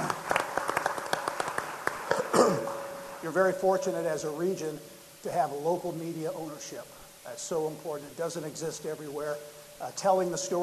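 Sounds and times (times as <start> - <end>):
scattered audience clapping at a regional community and business event: 0.0 - 3.4
speech: 3.2 - 10.6.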